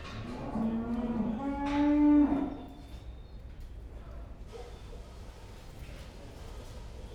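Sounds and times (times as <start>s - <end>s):
cow mooing in a pen: 0.3s - 2.6s.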